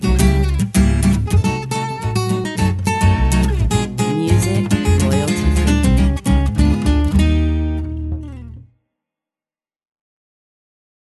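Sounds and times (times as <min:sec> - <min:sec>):
swing music: 0:00.0 - 0:08.6.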